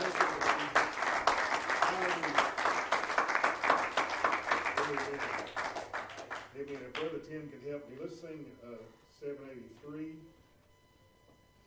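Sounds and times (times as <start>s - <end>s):
audience hand clapping: 0.0s - 7.2s
speech: 7.2s - 10.4s.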